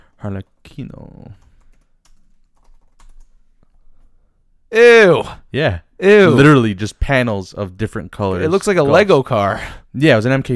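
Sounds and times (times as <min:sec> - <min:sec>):
speech: 0:00.2 - 0:01.5, 0:04.7 - 0:10.5
typing on a computer keyboard: 0:01.3 - 0:03.4.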